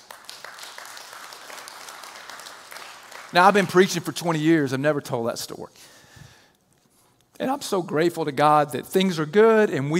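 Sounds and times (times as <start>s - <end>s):
audience applause: 0.0s - 3.8s
speech: 3.3s - 6.0s, 7.4s - 9.9s.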